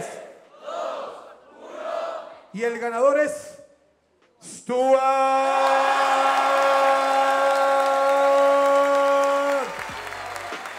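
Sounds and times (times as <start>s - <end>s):
speech: 2.5s - 3.6s, 4.4s - 6.7s
audience applause and cheering: 5.4s - 10.7s.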